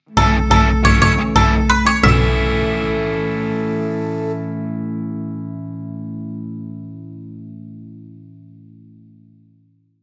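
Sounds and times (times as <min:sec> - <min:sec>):
Japanese-style jingle: 0:00.1 - 0:04.5.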